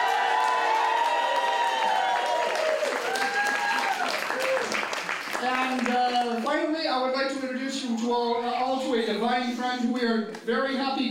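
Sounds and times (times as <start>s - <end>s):
audience cheering: 0.0s - 5.9s
audience applause: 0.0s - 6.6s
speech: 6.7s - 11.0s.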